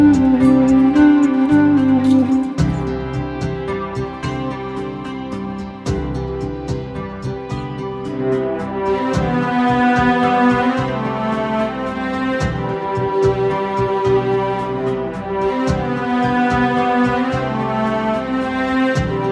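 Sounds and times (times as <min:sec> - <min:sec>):
flute: 0:00.0 - 0:05.7, 0:07.5 - 0:19.3
violin: 0:00.0 - 0:19.3.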